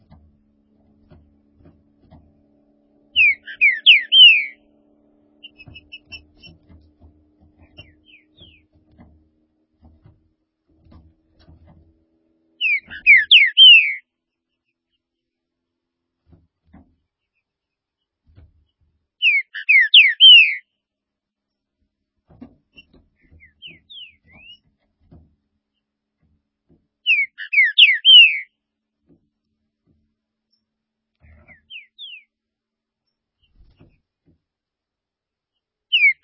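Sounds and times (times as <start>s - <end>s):
Green-winged saltator singing slurred whistles: 3.1s - 4.6s, 5.4s - 6.5s, 7.7s - 8.6s, 12.6s - 14.0s, 19.2s - 20.6s, 23.3s - 24.6s, 27.0s - 28.5s, 31.4s - 32.3s, 35.9s - 36.2s.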